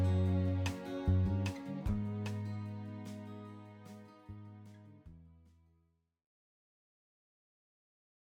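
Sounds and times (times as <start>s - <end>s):
karaoke backing music chorus bridge: 0.0s - 4.3s.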